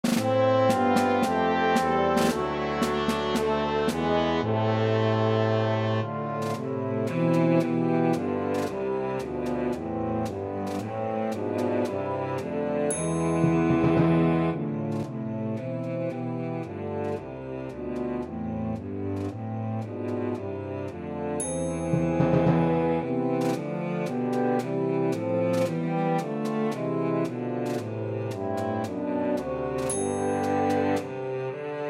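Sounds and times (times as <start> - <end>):
cello melody: 0.0 - 31.8.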